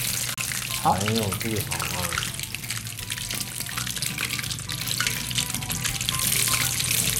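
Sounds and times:
food sizzling in hot oil: 0:00.0 - 0:07.1
speech: 0:00.8 - 0:02.0.

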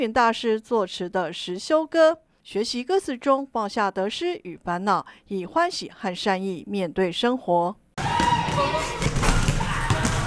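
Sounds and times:
speech: 0:00.0 - 0:07.8
basketball dribbled on a court by young Buddhist novice monks: 0:08.2 - 0:10.2.

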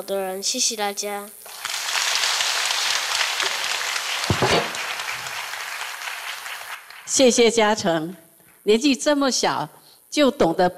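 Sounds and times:
speech: 0:00.0 - 0:01.7, 0:07.2 - 0:10.7
audience applause: 0:01.5 - 0:07.2.

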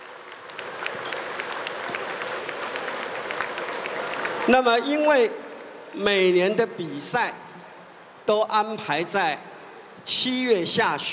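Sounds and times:
audience applause: 0:00.0 - 0:05.9
speech: 0:04.5 - 0:07.4, 0:08.3 - 0:11.1.

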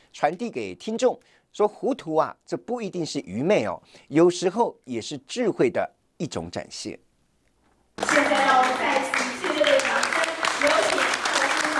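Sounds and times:
speech: 0:00.2 - 0:07.0
audience applause as a Buddhist lecturer comes on stage: 0:08.0 - 0:11.7.

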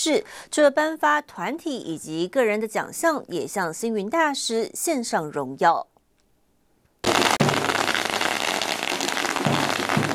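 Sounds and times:
speech: 0:00.0 - 0:05.9
firecrackers going off continuously: 0:07.0 - 0:10.1.

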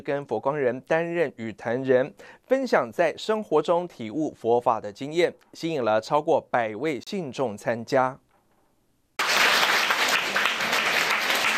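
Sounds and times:
speech: 0:00.0 - 0:08.2
sustained crowd applause welcoming a speaker: 0:09.2 - 0:11.5.

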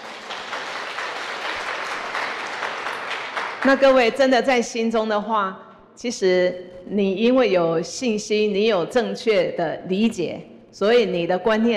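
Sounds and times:
audience applause: 0:00.0 - 0:03.9
speech: 0:03.6 - 0:11.7.

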